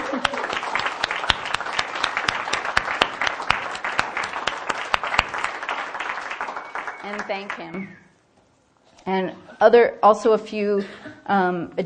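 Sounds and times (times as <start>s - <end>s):
audience applause: 0.0s - 7.9s
speech: 7.4s - 8.0s, 9.1s - 11.8s.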